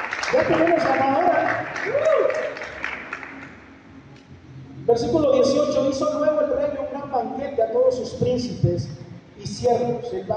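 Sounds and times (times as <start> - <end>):
audience applause: 0.0 - 3.6
speech: 0.3 - 2.7, 4.9 - 10.3.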